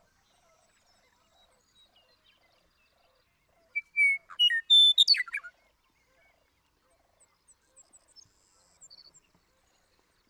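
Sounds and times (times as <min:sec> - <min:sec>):
Western meadowlark song: 0:03.8 - 0:05.4.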